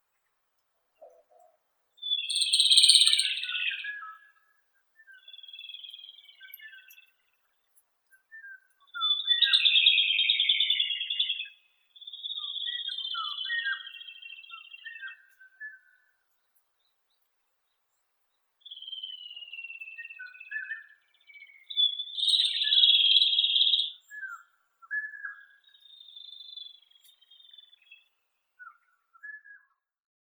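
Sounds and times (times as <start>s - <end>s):
whistling nightingale Luscinia sibilans: 2.0s - 4.3s, 5.0s - 7.0s, 8.3s - 16.0s, 18.6s - 29.6s.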